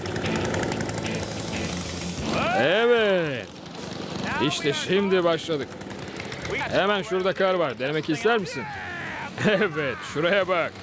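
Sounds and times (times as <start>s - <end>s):
old snowblower engine sputtering and roaring: 0.0s - 10.8s
speech: 4.4s - 5.9s, 6.5s - 8.8s, 9.4s - 10.8s
laughter: 8.4s - 10.8s.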